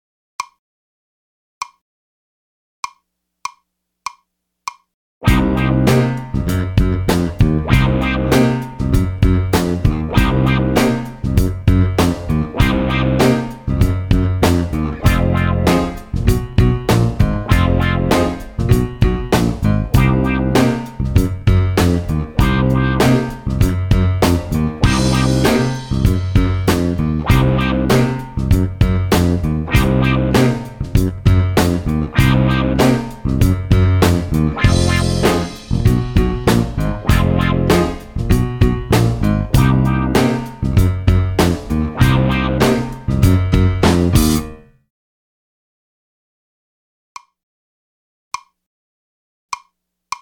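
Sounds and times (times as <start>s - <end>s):
minor blues music: 5.2s - 44.6s.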